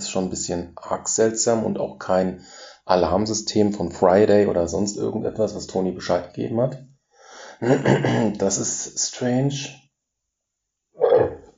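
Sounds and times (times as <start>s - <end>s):
speech: 0.1s - 6.9s, 7.6s - 9.8s
deep rumbling burp: 7.6s - 8.3s, 11.0s - 11.5s
laughter: 7.6s - 8.5s.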